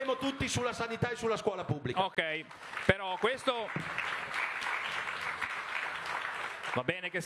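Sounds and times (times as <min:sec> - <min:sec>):
speech: 0:00.2 - 0:04.4, 0:06.8 - 0:07.2
audience applause at the Festa dell'Unità political festival: 0:02.5 - 0:07.2.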